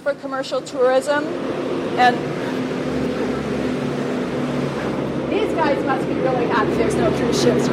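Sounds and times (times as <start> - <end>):
speech: 0.0 - 2.4, 5.6 - 7.7
trucks hauling shipping containers in downtown Juneau: 0.0 - 7.7.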